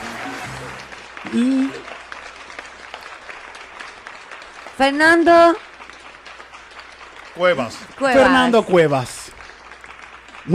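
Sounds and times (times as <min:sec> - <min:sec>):
audience applause: 0:00.0 - 0:10.5
person cheering: 0:01.2 - 0:01.9
speech: 0:01.3 - 0:01.9, 0:04.8 - 0:05.7, 0:07.4 - 0:09.2.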